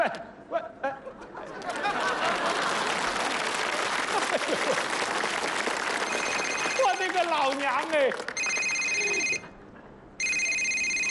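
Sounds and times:
laughter: 0.0 - 5.2
telephone ringing with electronic trill for incoming call: 6.0 - 7.1, 8.4 - 9.5, 10.2 - 11.0
speech: 7.4 - 8.3.

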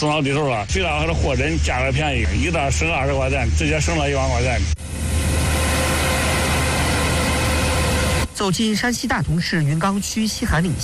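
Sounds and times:
speech: 0.0 - 5.2, 8.4 - 10.8
combine harvester working at full power in a golden cornfield: 1.0 - 9.1.

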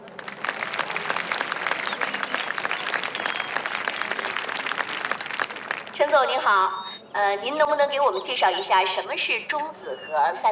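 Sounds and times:
audience applause: 0.0 - 6.2
speech: 6.1 - 10.5.

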